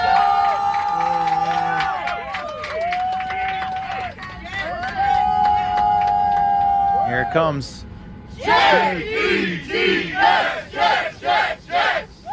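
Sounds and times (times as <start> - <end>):
fans cheering and whooping on an airplane: 0.0 - 7.6
speech: 7.3 - 11.0
fans chanting on an airplane: 8.4 - 12.2.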